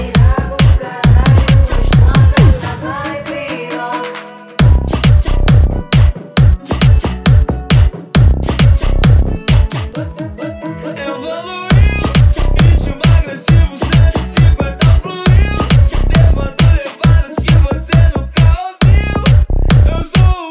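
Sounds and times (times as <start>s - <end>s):
extreme bass: 0.2s - 2.7s, 4.6s - 9.7s, 11.7s - 16.7s, 17.5s - 20.2s.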